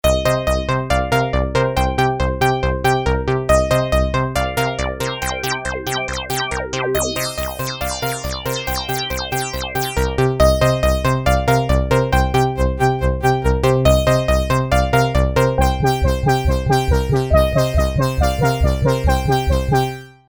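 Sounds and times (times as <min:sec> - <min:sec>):
synth: 0:00.1 - 0:20.2.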